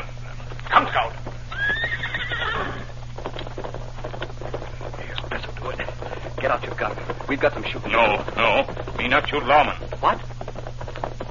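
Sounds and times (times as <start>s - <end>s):
horse hooves clopping: 0.0s - 11.2s
horse neighing: 1.5s - 3.0s
speech: 6.5s - 10.3s.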